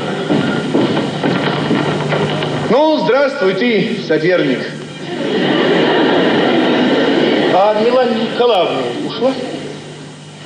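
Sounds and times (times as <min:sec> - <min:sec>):
clumsy footsteps thudding: 0:00.0 - 0:02.8
speech: 0:02.7 - 0:05.6, 0:07.6 - 0:09.5
laughter: 0:04.9 - 0:09.8.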